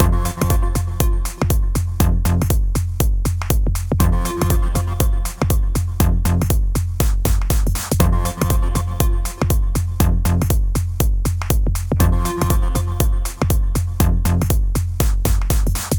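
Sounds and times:
retro techno: 0.0 - 15.9.

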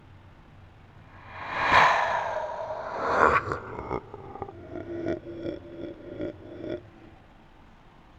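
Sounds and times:
monster: 1.2 - 7.1.

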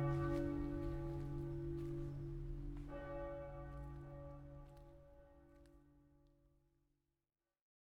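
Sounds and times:
bells of Cathédrale Saint-Étienne in Limoges France: 0.0 - 6.0.

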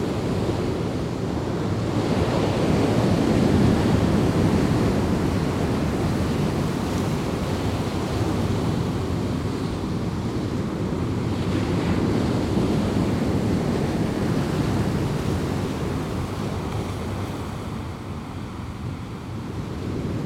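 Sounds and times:
waves in a seaside cove: 0.0 - 20.2.

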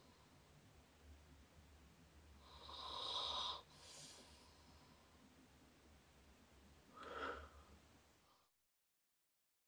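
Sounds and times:
man breathing while sleeping: 2.4 - 5.2, 6.9 - 8.5.

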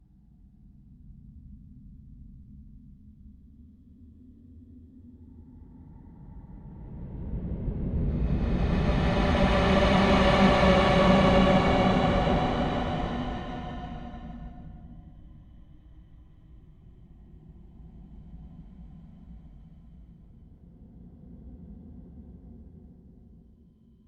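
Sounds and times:
horror whoosh: 7.4 - 15.0.

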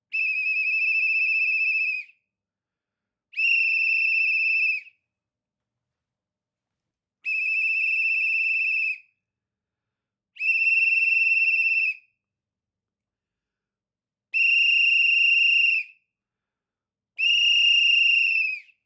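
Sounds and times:
whistle blasts: 0.1 - 2.1, 3.4 - 4.9, 7.3 - 9.1, 10.4 - 12.0, 14.4 - 16.0, 17.2 - 18.8.

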